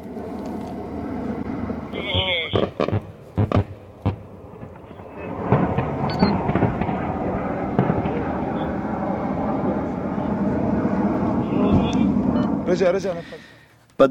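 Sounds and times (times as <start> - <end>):
warplane jet roar during a night bombardment: 0.0 - 13.5
rocket fire bangs during a night bombardment: 1.9 - 10.2.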